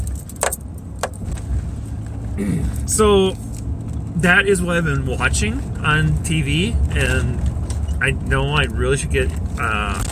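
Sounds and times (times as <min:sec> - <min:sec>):
car engine and road rumble: 0:00.0 - 0:10.1
speech: 0:02.4 - 0:03.5, 0:04.2 - 0:10.1.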